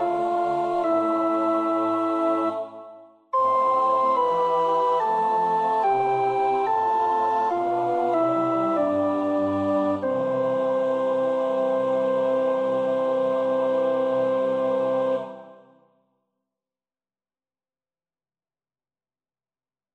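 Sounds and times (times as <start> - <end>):
soprano practising a choir part: 0.0 - 15.8.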